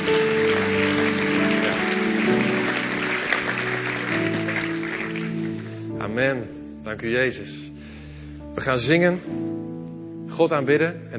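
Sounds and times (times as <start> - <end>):
audience applause: 0.0 - 5.9
speech: 6.2 - 7.7, 8.6 - 9.7, 10.3 - 11.1.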